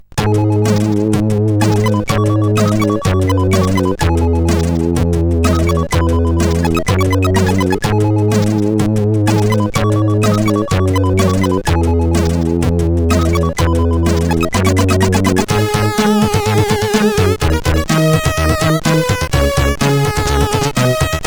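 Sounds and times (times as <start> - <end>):
CSG8580R5 sound chip tune: 0.2 - 21.2.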